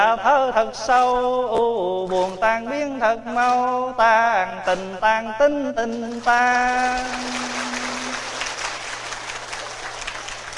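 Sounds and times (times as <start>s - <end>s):
speech: 0.1s - 7.6s
audience clapping: 6.1s - 10.5s.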